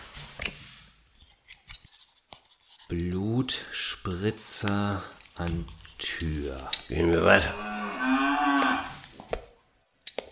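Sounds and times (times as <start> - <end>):
pen writing notes on paper: 1.7 - 8.0
speech: 2.9 - 8.9.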